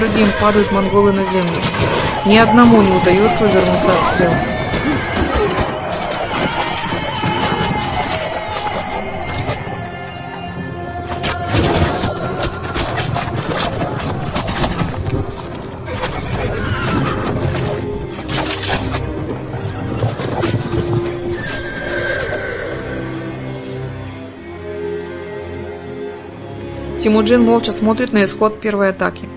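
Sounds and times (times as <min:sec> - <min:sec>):
speech: 0:00.0 - 0:04.6, 0:27.0 - 0:29.3
horse whinnies in a film battle scene of Mongol cavalry charging: 0:00.0 - 0:09.5, 0:15.8 - 0:23.3
galloping hooves of Mongol cavalry charging in a film battle scene: 0:00.0 - 0:09.9, 0:11.1 - 0:22.9.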